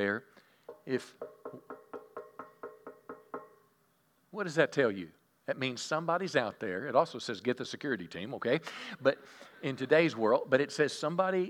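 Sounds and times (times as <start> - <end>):
speech: 0.0 - 1.7, 4.4 - 11.4
knocking on a door: 0.7 - 3.6.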